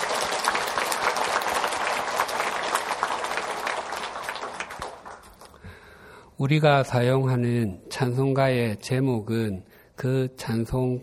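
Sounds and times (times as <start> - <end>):
audience applauding: 0.0 - 5.6
speech: 6.4 - 11.0.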